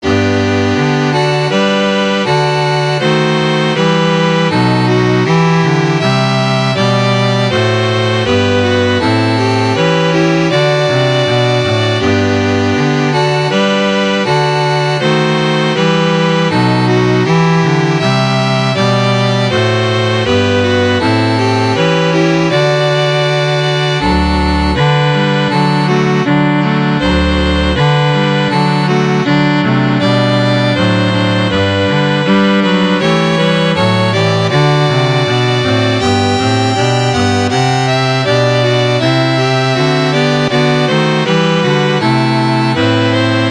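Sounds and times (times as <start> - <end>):
string quartet playing a national anthem: 0.0 - 43.4.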